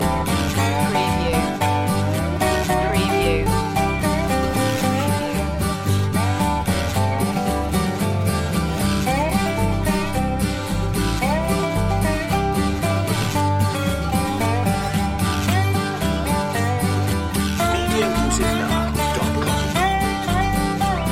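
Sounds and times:
farmyard blues music loop: 0.0s - 21.0s
laughter: 17.6s - 21.0s.

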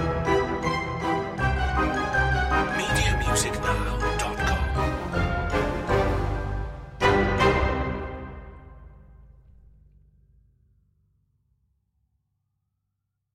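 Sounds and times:
spooky adventure music: 0.0s - 9.7s.

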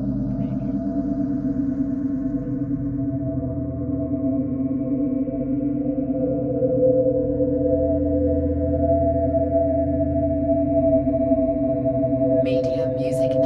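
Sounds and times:
ghostly swelling drone: 0.0s - 13.4s.

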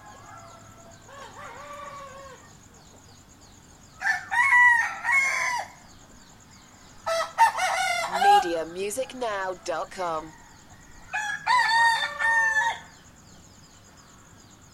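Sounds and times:
rooster crowing: 0.0s - 2.5s, 4.0s - 5.8s, 7.0s - 8.8s, 9.4s - 13.0s
speech: 8.8s - 10.4s.

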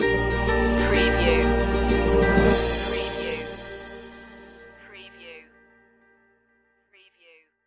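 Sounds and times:
music stinger: 0.0s - 4.9s.

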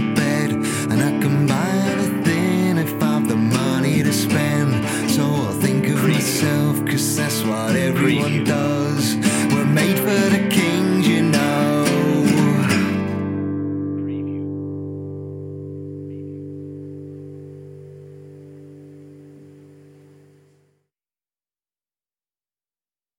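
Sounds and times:
outro vocals: 0.0s - 14.5s.

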